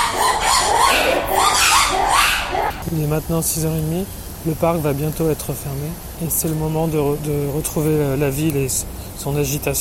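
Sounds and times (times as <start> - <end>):
birds calling at a zoo: 0.0 - 2.8
speech: 3.0 - 9.7.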